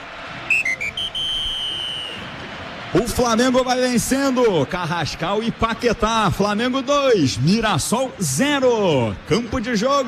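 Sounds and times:
referee's whistle ending the first half of a football match at the Maracanã: 0.5 - 2.3
speech: 2.9 - 10.0.

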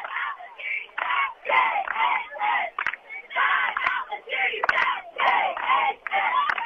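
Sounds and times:
cheerleaders chanting rhythmic cheers at a football game: 0.0 - 6.6
crowd noise at a football game: 0.0 - 6.6
sharp claps: 0.9 - 2.1, 2.7 - 3.0, 3.6 - 6.6.

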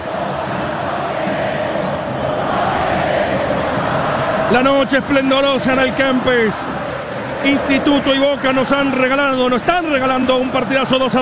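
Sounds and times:
football supporters chanting in a stadium: 0.0 - 11.1
speech: 4.5 - 6.8, 7.4 - 11.1.

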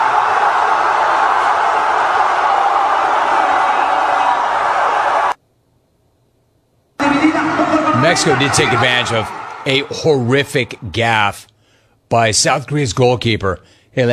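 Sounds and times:
stadium crowd roaring wildly: 0.0 - 5.4, 7.0 - 11.4
speech: 8.2 - 11.5, 12.1 - 14.1.

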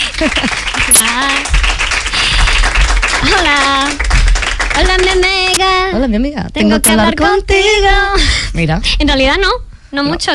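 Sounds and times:
audience applause: 0.0 - 5.6
speech: 0.2 - 1.7, 3.2 - 4.1, 4.8 - 10.3.

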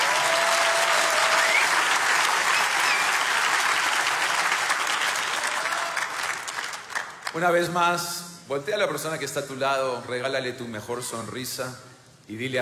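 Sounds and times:
audience applause: 0.0 - 7.4
speech: 7.4 - 12.5.

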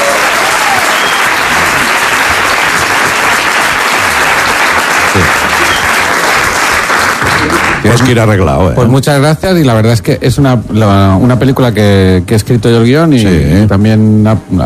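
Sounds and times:
applause: 0.0 - 8.3
speech: 7.9 - 14.6.

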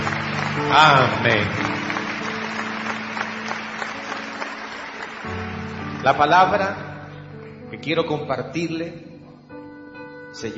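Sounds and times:
audience applause: 0.0 - 6.6
speech: 0.6 - 1.8, 6.0 - 6.9, 7.7 - 9.1, 10.4 - 10.5.

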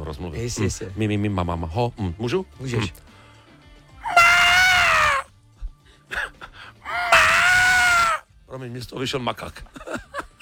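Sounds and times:
speech: 0.1 - 3.1, 8.6 - 9.9
voice imitating wapiti elk bugle call: 4.0 - 5.3, 6.9 - 8.2
breathy sounds: 4.1 - 5.2, 6.9 - 8.2.

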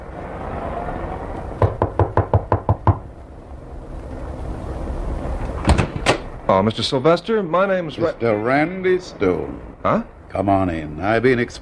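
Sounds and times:
low rumble: 0.0 - 11.6
knocking on a wooden door: 1.6 - 3.0
speech: 6.5 - 11.6.

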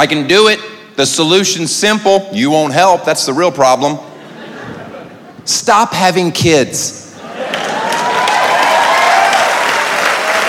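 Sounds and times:
speech: 0.0 - 4.1, 5.5 - 7.7
laughter: 4.0 - 5.5, 7.1 - 8.2
audience applause: 7.3 - 10.4.

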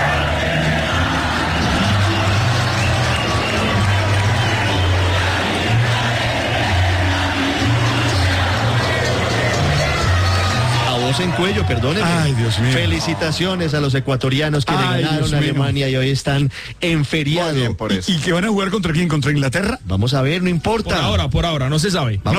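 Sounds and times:
Colombian fans singing in MetLife Stadium, New Jersey: 0.0 - 13.4, 14.7 - 15.7
speech: 11.2 - 22.3.

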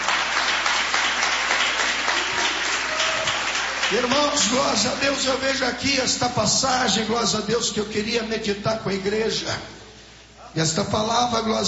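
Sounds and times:
audience clapping hands: 0.0 - 5.6
speech: 3.9 - 9.8, 10.6 - 11.6.

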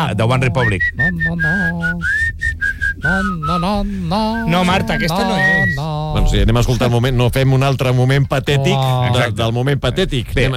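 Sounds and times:
speech: 0.0 - 2.3, 3.0 - 10.5
low hum: 0.0 - 10.5
person whistling a tune: 0.6 - 5.9.

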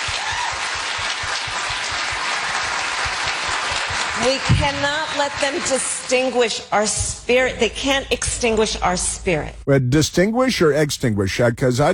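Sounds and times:
crowd applauding: 0.0 - 5.9
speech: 4.2 - 11.9.

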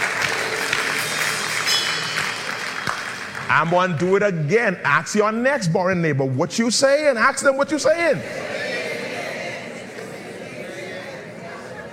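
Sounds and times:
crowd clapping in unison: 0.0 - 4.2
speech: 3.5 - 8.6.

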